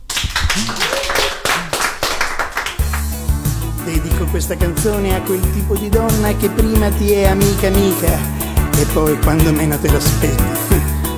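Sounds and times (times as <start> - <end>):
audience applause: 0.0 - 3.2
speech: 3.9 - 10.9.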